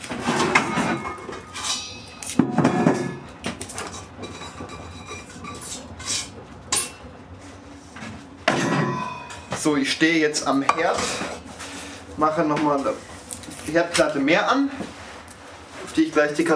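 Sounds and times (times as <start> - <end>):
cooking pots clanking as handled in a kitchen: 0.2 - 7.1, 8.4 - 9.7
speech: 9.8 - 11.4, 12.2 - 13.1, 13.7 - 15.0, 16.0 - 16.5.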